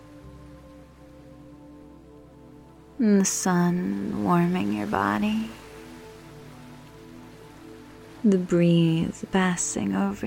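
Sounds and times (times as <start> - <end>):
soft low drone: 0.0 - 10.2
speech: 3.0 - 5.6, 8.2 - 10.2
ocean surf: 3.4 - 10.2.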